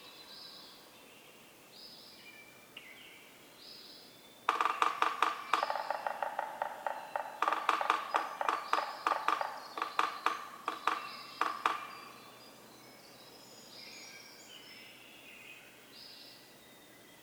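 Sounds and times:
Yellow-bellied Sapsucker drumming: 4.5s - 12.2s.

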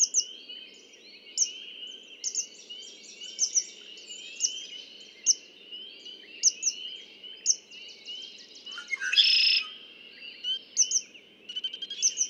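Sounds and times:
Red-winged Blackbird: 0.0s - 12.2s.

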